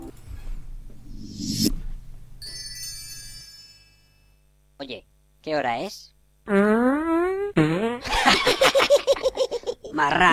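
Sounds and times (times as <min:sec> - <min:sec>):
speech: 0:04.8 - 0:07.2, 0:10.0 - 0:10.3
long buzzy fart noises in a comic rap song: 0:06.4 - 0:08.2
laughter: 0:08.0 - 0:10.2.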